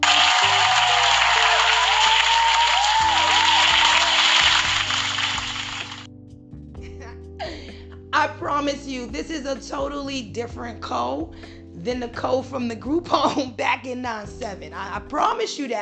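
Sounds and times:
dense round of applause: 0:00.0 - 0:06.1
low droning musical bed: 0:00.0 - 0:15.1
speech: 0:08.6 - 0:15.7.

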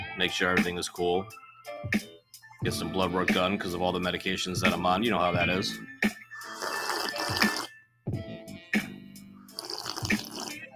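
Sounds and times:
speech: 0:00.2 - 0:06.2
person slurping a drink into the mic: 0:06.4 - 0:07.7, 0:09.5 - 0:10.6.

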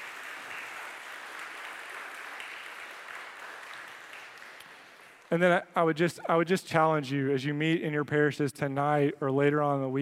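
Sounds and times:
audience clapping: 0:00.0 - 0:05.6
speech: 0:05.3 - 0:09.9.

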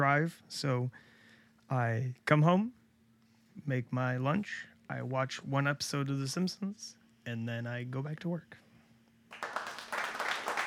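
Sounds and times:
speech: 0:00.1 - 0:01.1, 0:01.7 - 0:02.8, 0:03.6 - 0:08.6
crowd applause: 0:09.3 - 0:10.6
faint cheering: 0:09.3 - 0:10.6.

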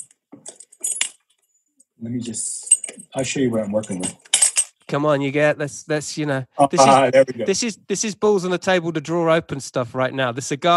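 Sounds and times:
keys jangling to unlock a cigar humidor: 0:00.0 - 0:01.3, 0:02.6 - 0:03.1, 0:03.8 - 0:04.8
speech: 0:02.0 - 0:04.2, 0:04.9 - 0:10.7.

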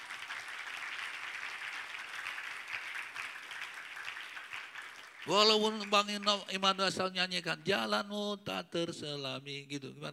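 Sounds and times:
large crowd applause: 0:00.0 - 0:06.3
speech: 0:05.2 - 0:10.1.

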